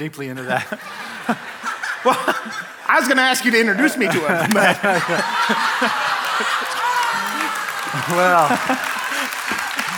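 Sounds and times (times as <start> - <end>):
speech: 0.0 - 6.6, 8.0 - 9.0
laughter: 0.2 - 9.9
clapping: 5.8 - 9.9.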